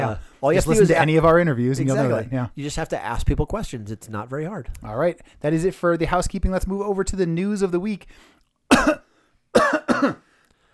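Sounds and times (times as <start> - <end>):
speech: 0.0 - 9.1, 10.0 - 10.2
harsh rasping coughs: 8.7 - 10.7.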